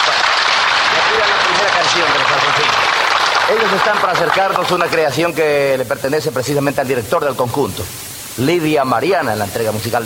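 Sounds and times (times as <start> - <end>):
crowd applause: 0.0 - 5.5
speech: 3.5 - 10.0.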